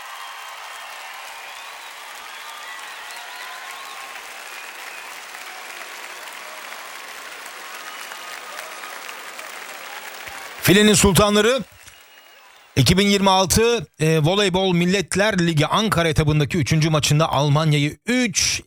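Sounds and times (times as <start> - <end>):
applause: 0.0 - 13.8
speech: 10.6 - 11.8, 12.8 - 18.6.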